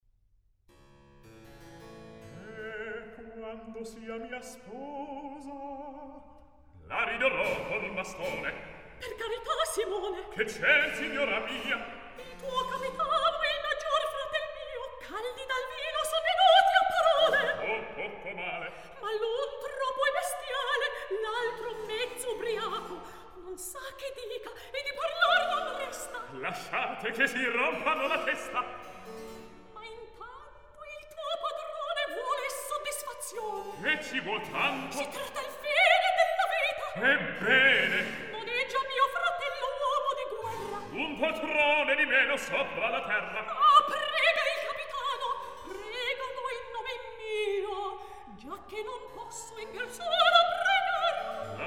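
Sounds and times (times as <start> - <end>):
recitative singing: 2.4 - 29.1, 30.9 - 51.6.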